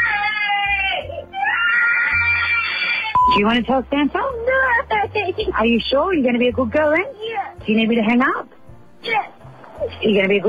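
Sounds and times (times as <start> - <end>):
young girl crying loudly during a tantrum, recorded on a phone: 0.0 - 3.1
speech: 3.4 - 9.3, 10.0 - 10.4.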